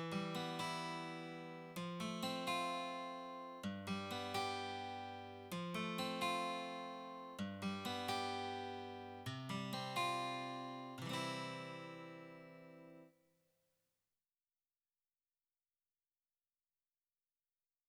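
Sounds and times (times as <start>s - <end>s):
guitar: 0.0s - 13.2s.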